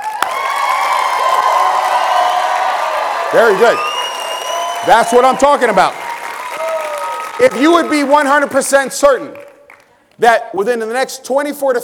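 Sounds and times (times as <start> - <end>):
audience applauding and cheering loudly: 0.0 - 10.1
speech: 3.3 - 3.9, 4.8 - 6.0, 7.4 - 9.4, 10.2 - 11.8.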